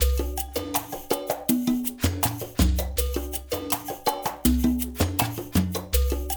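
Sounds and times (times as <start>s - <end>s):
funk percussion loop: 0.0s - 6.3s.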